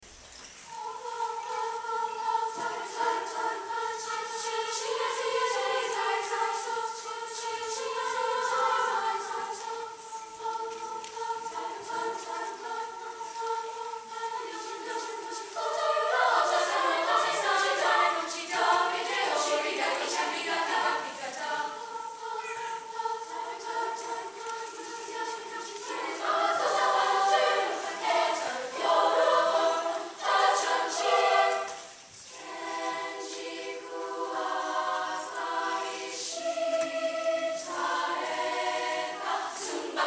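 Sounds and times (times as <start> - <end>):
chamber choir singing: 0.0 - 40.0.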